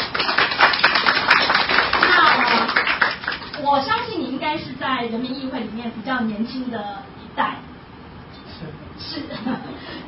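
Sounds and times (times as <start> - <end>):
crowd applauding: 0.0 - 3.6
speech: 3.7 - 7.6, 8.6 - 10.0.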